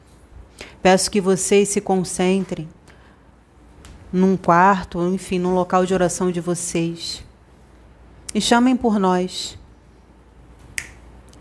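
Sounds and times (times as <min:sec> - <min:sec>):
low hum: 0:00.0 - 0:11.3
speech: 0:00.8 - 0:02.8, 0:04.1 - 0:07.3, 0:08.3 - 0:09.6
finger snap: 0:10.6 - 0:11.3.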